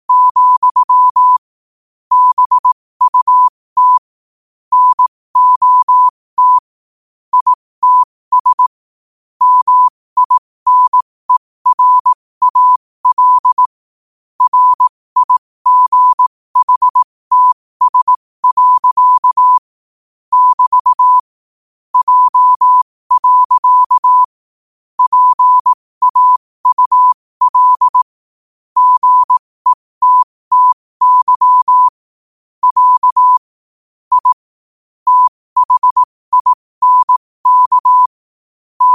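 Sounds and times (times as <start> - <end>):
morse code at 5 wpm: 0.1 - 1.4, 2.1 - 4.1, 4.7 - 6.6, 7.3 - 8.7, 9.4 - 13.7, 14.4 - 19.7, 20.3 - 21.2, 22.0 - 24.3, 25.0 - 28.2, 28.8 - 32.0, 32.6 - 33.5, 34.1 - 34.5, 35.1 - 38.2, 38.8 - 38.9.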